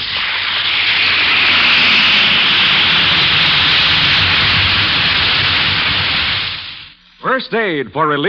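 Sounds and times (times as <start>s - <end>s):
effervescent tablet fizzing in water: 0.0s - 7.0s
speech: 7.4s - 8.2s.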